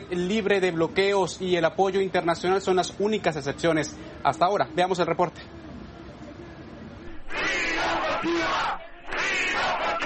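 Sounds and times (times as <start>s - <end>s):
speech: 0.1s - 5.6s
protest crowd shouting slogans: 7.0s - 10.0s.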